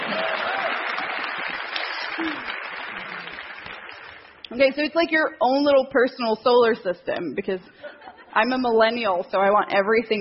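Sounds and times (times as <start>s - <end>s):
crowd clapping: 0.0s - 4.5s
speech: 4.5s - 10.1s.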